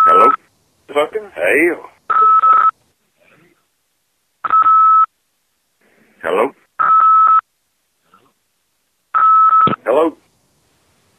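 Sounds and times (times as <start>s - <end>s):
high electronic phone redial tone: 0.0s - 0.4s, 2.1s - 2.7s, 6.8s - 7.4s, 9.2s - 9.8s
speech: 1.0s - 1.9s.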